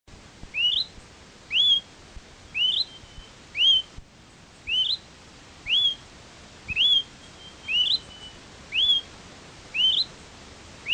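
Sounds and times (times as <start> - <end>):
Smoke-colored Pewee Contopus fumigatus zarumae rising whistle: 0.5 - 0.9, 1.5 - 1.8, 2.6 - 3.9, 4.7 - 5.0, 5.7 - 6.0, 6.7 - 9.1, 9.7 - 10.1.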